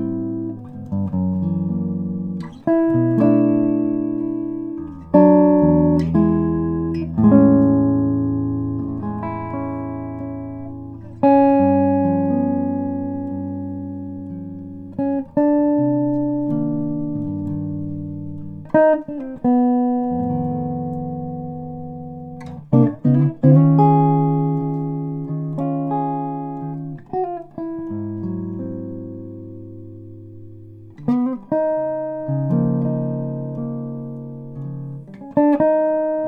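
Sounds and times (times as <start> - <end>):
16-inch laminate top and back archtop guitar: 0.0 - 36.2.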